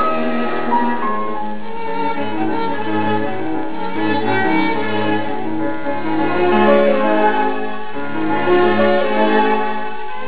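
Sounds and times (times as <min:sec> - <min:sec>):
piano quintet playing: 0:00.0 - 0:10.2.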